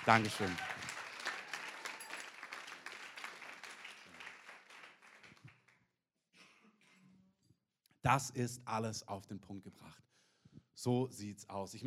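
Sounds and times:
speech: 0.0s - 0.7s, 8.0s - 10.1s, 10.8s - 11.8s
audience applause: 0.0s - 5.6s.

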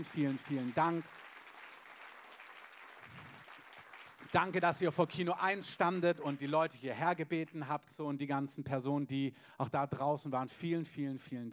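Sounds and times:
speech: 0.0s - 1.3s, 4.3s - 11.5s
audience applause: 0.0s - 4.9s.

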